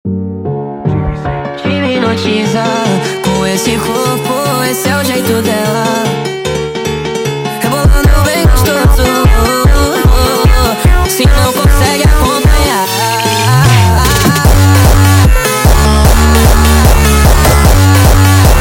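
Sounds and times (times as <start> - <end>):
sped up montagem music: 0.1 - 18.5.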